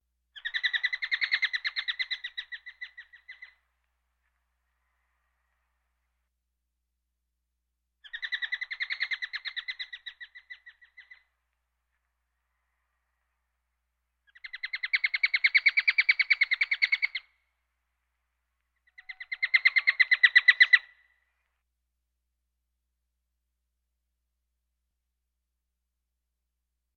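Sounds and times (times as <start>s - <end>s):
birds: 0.4s - 5.8s, 8.0s - 13.6s, 14.2s - 17.5s, 18.6s - 21.5s.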